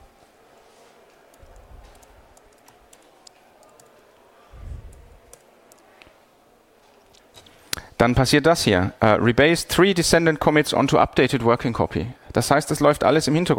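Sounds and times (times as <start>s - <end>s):
soft typing on a computer keyboard: 1.2s - 4.0s
speech: 8.0s - 13.5s.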